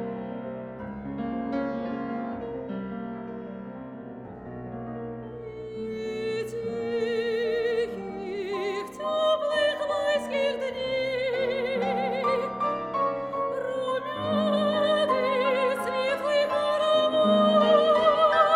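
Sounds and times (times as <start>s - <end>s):
fortepiano: 0.0s - 18.5s
soprano singing: 5.1s - 18.5s.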